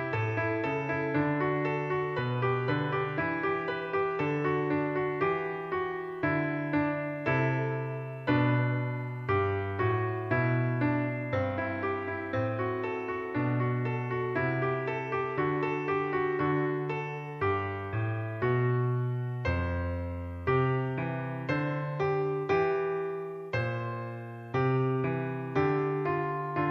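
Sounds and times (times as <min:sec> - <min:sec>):
piano piece: 0:00.0 - 0:26.6.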